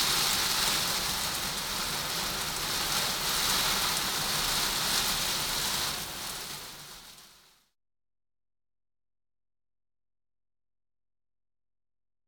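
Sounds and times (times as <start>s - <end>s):
rain against window: 0.0s - 7.6s.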